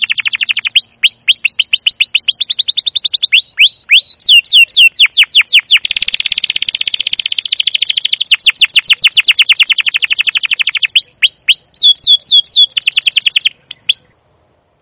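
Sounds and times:
canary in long continuous song: 0:00.0 - 0:14.1.

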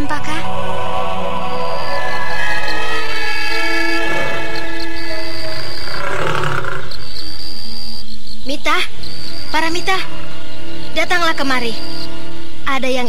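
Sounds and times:
tiger growling while being fed: 0:00.0 - 0:07.1
droning tonal background: 0:00.0 - 0:13.0
speech: 0:11.4 - 0:11.9, 0:12.8 - 0:13.0.

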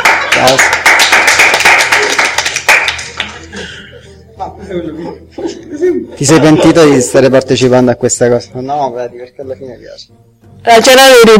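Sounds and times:
laughter: 0:00.0 - 0:00.8, 0:01.9 - 0:07.2
applause: 0:00.0 - 0:03.5
speech: 0:00.4 - 0:00.8, 0:04.7 - 0:11.3.

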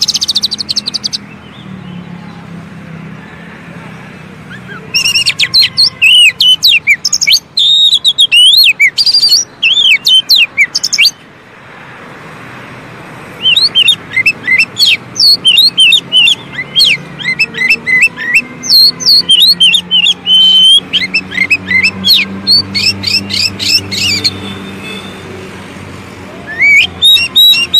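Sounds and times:
Oriental magpie-robin singing: 0:00.0 - 0:02.5, 0:04.4 - 0:11.3, 0:13.3 - 0:25.0, 0:26.4 - 0:27.7.

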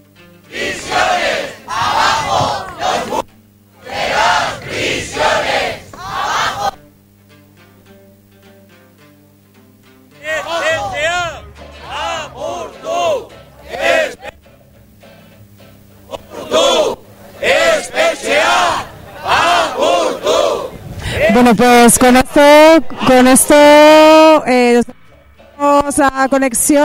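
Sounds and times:
protest crowd shouting chants: 0:00.5 - 0:06.8, 0:10.2 - 0:14.4, 0:16.1 - 0:21.5
speech: 0:21.5 - 0:25.0, 0:25.8 - 0:26.8.

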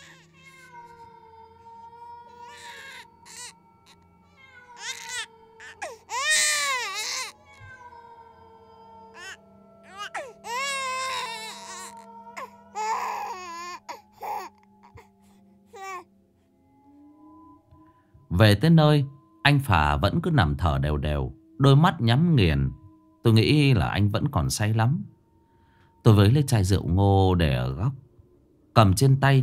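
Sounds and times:
baby crying faintly from a ravine below: 0:00.0 - 0:15.1, 0:15.7 - 0:16.1
speech: 0:18.4 - 0:25.2, 0:26.0 - 0:28.0, 0:28.8 - 0:29.4.

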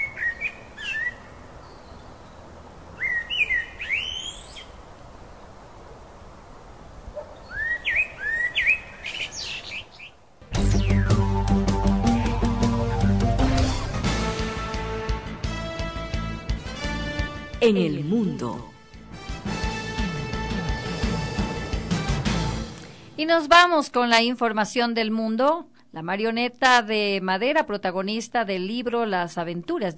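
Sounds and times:
birds in Quito chirping and singing: 0:00.0 - 0:02.4, 0:03.0 - 0:04.8, 0:07.4 - 0:13.6
loud music: 0:10.5 - 0:17.6, 0:18.8 - 0:23.1
speech: 0:17.6 - 0:18.7, 0:23.2 - 0:29.9.

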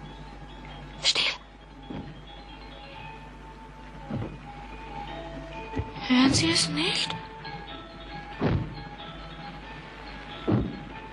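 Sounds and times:
heavy booming footsteps, not human: 0:01.8 - 0:02.4, 0:04.0 - 0:04.6, 0:05.7 - 0:07.2, 0:08.3 - 0:09.5, 0:10.3 - 0:11.1
speech: 0:06.2 - 0:07.3.

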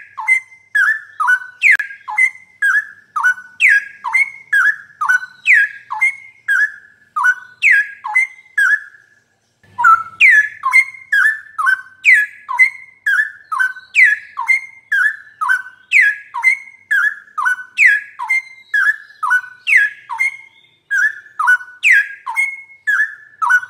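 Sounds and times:
bird singing whistled notes: 0:00.0 - 0:23.6.

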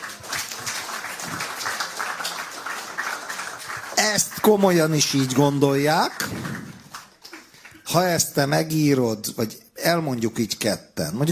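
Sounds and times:
applause: 0:00.0 - 0:08.3
speech: 0:04.0 - 0:06.5, 0:07.9 - 0:11.3.

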